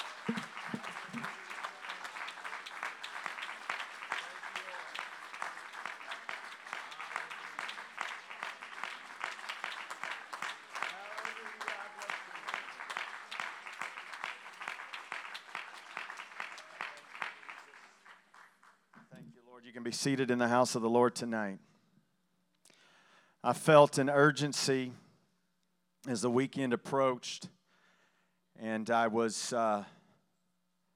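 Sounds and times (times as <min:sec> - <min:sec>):
crowd shouting and cheering: 0:00.0 - 0:13.8
crowd clapping: 0:00.0 - 0:19.2
speech: 0:19.8 - 0:21.7, 0:23.4 - 0:25.0, 0:26.1 - 0:27.5, 0:28.6 - 0:30.0.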